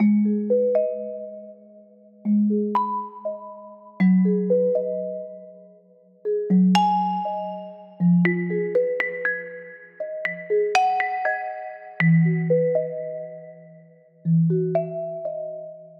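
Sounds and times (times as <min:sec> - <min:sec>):
mallet loop in G sharp minor: 0:00.0 - 0:15.9.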